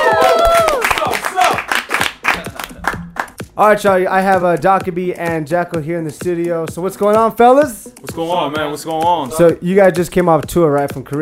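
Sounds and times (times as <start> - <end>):
round of applause: 0.0 - 3.4
speech: 3.6 - 11.1.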